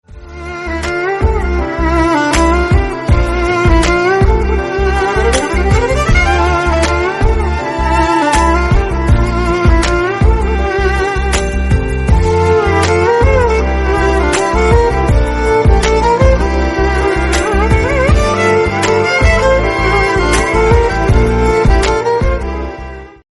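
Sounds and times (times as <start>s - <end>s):
very sad instrumental ringtone: 0.4s - 23.0s.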